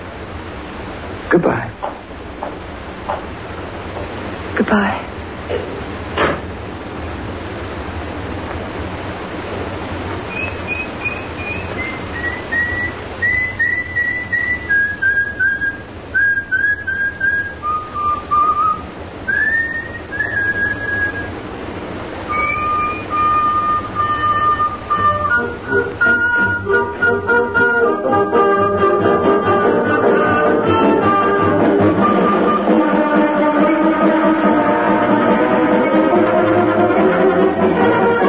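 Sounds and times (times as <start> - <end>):
low rumble: 0.0 - 38.2
speech: 1.3 - 1.9, 4.6 - 5.1
person whistling a tune as an all-clear signal: 10.3 - 21.3, 22.3 - 27.8.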